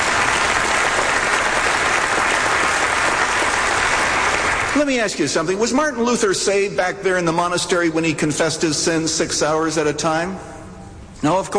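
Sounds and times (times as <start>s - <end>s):
audience clapping: 0.0s - 5.0s
speech: 4.8s - 10.6s, 11.2s - 11.5s.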